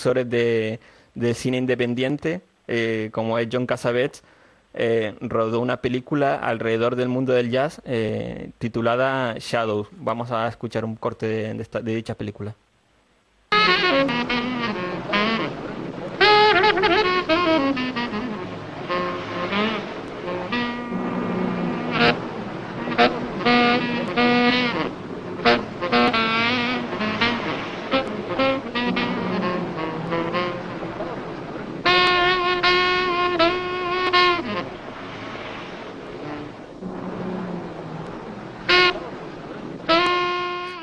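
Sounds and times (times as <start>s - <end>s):
speech: 0.0s - 12.6s
saxophone playing in a 1959 jazz film scene: 13.5s - 40.8s.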